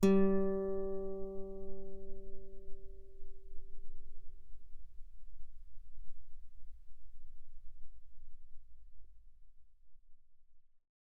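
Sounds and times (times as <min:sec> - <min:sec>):
guitar notes mezzo forte on G string: 0:00.0 - 0:03.2.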